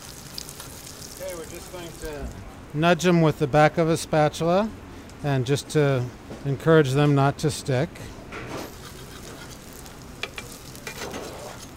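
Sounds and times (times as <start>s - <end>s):
latkes sizzling in a shaken frying pan: 0.0s - 2.2s, 8.7s - 11.7s
speech: 1.4s - 8.2s.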